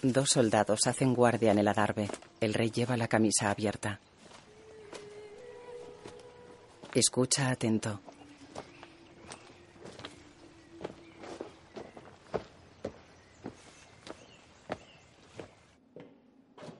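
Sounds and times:
speech: 0.0s - 4.1s, 6.9s - 8.1s
footsteps walking through a castle passage: 4.2s - 7.2s, 8.0s - 16.7s.

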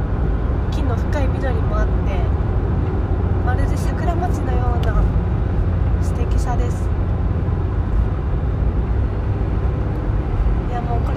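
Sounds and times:
car driving along a road, engine and tyre rumble: 0.0s - 11.1s
speech: 0.9s - 2.4s, 3.4s - 7.0s.

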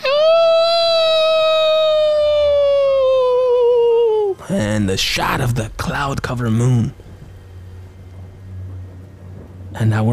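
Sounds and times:
wolves howling: 0.2s - 4.5s
speech: 4.8s - 7.0s, 9.8s - 10.1s.

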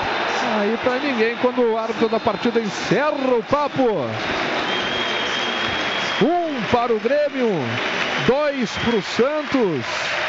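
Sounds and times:
stadium crowd of fans applauding and cheering: 0.0s - 10.2s
speech: 0.6s - 4.4s, 6.2s - 10.2s.

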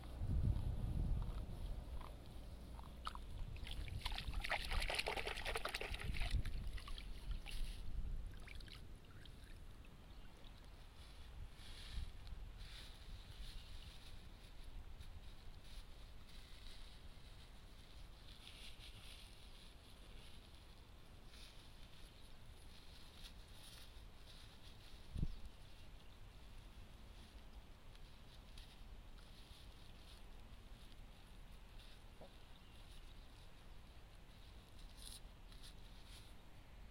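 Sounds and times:
soft rustles of rice seedlings: 0.0s - 4.4s, 5.9s - 8.3s, 10.4s - 36.8s
splashing in a flooded rice nursery bed: 3.0s - 7.6s.

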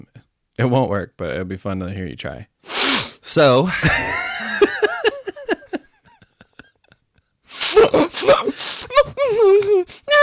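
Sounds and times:
speech: 0.6s - 2.5s, 3.3s - 4.3s
person sniffling: 2.6s - 3.2s, 7.4s - 10.1s
laughter: 3.7s - 7.0s.

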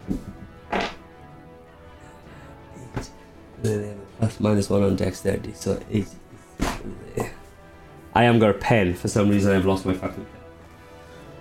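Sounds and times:
dice knocking onto a tabletop: 0.7s - 1.0s
speech: 3.6s - 6.2s, 8.2s - 10.4s.

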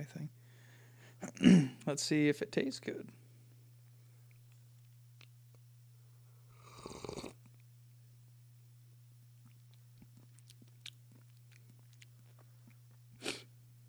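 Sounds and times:
speech: 1.4s - 3.2s
breathy sniffs: 13.2s - 13.5s.

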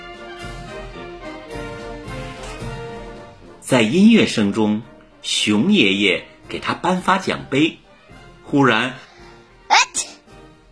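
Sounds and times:
speech: 3.7s - 7.8s, 8.5s - 9.0s
loud sneeze: 9.7s - 10.2s.

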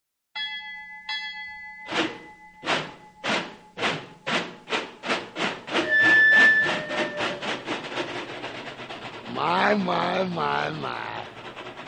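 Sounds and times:
ringing bell tones: 0.4s - 3.8s, 5.8s - 7.4s
steam train chuffing as it starts up: 1.9s - 11.8s
whistle-like tone: 5.8s - 7.7s
speech: 9.7s - 11.1s.

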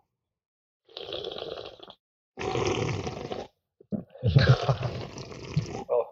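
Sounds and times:
slurping beer into the microphone: 0.9s - 3.5s, 4.4s - 5.9s.

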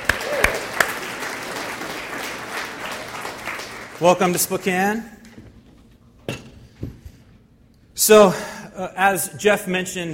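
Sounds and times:
sharp claps: 0.0s - 4.4s
church congregation clapping to welcome returning Moody students: 0.0s - 5.1s
speech: 4.0s - 5.2s, 8.0s - 10.1s.

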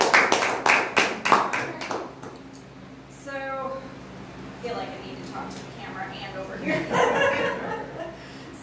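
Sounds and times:
small audience applause: 0.0s - 2.2s
laughter: 6.6s - 8.3s.

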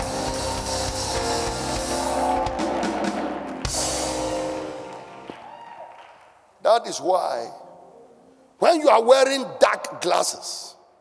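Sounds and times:
crowd clapping: 0.0s - 6.5s
speech: 6.8s - 7.6s, 8.6s - 10.8s.

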